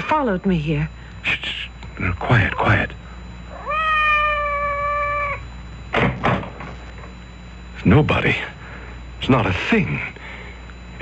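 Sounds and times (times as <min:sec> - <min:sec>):
speech: 0:00.1 - 0:03.0, 0:07.8 - 0:08.6, 0:09.2 - 0:10.2
cat meowing outside the door: 0:03.5 - 0:05.4.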